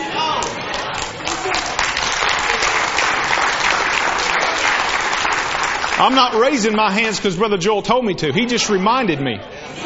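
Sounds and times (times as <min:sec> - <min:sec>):
audience clapping: 0:00.3 - 0:07.1
speech: 0:06.0 - 0:09.5.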